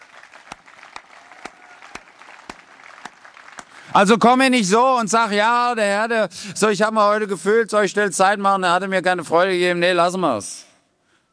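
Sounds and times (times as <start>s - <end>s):
audience applause: 0.0s - 4.3s
speech: 3.9s - 10.7s.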